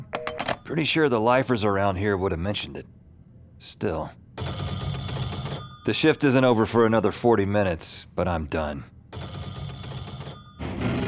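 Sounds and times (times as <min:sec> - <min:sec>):
telephone ringing: 0:00.0 - 0:00.8, 0:04.4 - 0:07.0, 0:09.1 - 0:11.0
speech: 0:00.7 - 0:03.0, 0:03.6 - 0:04.5, 0:05.8 - 0:09.0.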